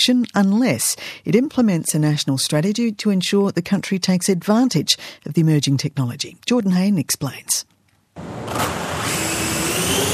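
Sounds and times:
speech: 0:00.0 - 0:09.2
drone buzzing in flight: 0:08.2 - 0:10.1.

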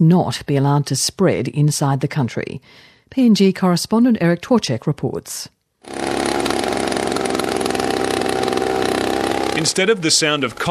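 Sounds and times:
speech: 0:00.0 - 0:06.1, 0:09.6 - 0:10.6
motorized sprayer spraying insecticide on coffee trees: 0:05.8 - 0:10.6.

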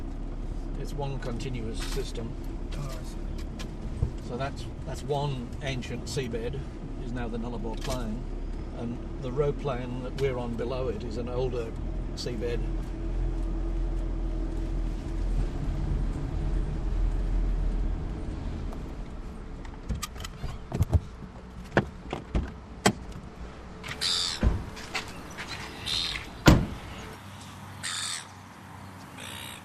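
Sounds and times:
car driving on a sand track: 0:00.0 - 0:29.6
speech: 0:00.8 - 0:03.3, 0:04.3 - 0:12.9
car door clunks: 0:19.8 - 0:25.2, 0:26.4 - 0:26.9
crows cawing: 0:23.9 - 0:24.5, 0:25.8 - 0:26.3, 0:27.8 - 0:28.4, 0:29.1 - 0:29.6.

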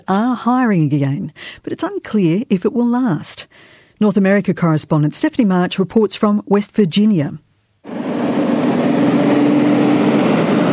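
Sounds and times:
speech: 0:00.1 - 0:08.0
heavy coal truck driving past: 0:07.9 - 0:10.7.

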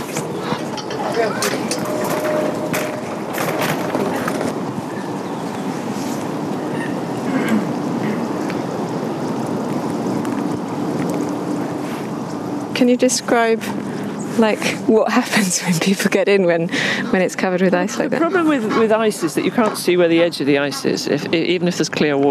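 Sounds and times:
rain falling at outdoor swimming pond: 0:00.0 - 0:16.6
speech: 0:12.8 - 0:22.2.

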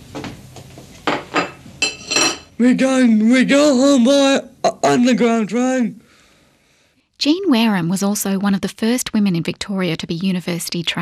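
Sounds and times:
ceramic plate clattering and clinking: 0:01.1 - 0:02.5
speech: 0:02.6 - 0:06.0, 0:07.2 - 0:10.9.

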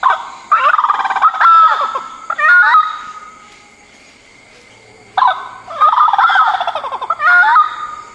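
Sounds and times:
orange-footed scrubfowl calling: 0:00.0 - 0:03.5, 0:05.2 - 0:08.1.

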